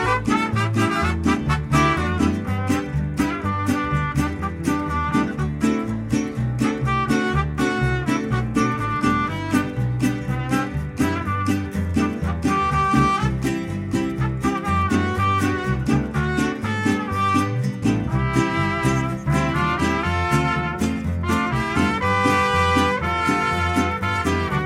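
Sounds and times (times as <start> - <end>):
mariachi music: 0.0 - 24.6.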